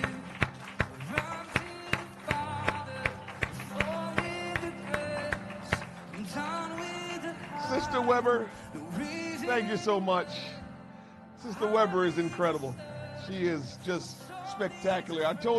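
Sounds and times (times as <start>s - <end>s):
audience clapping in unison: 0.0s - 8.3s
speech: 7.9s - 10.6s, 11.4s - 15.5s.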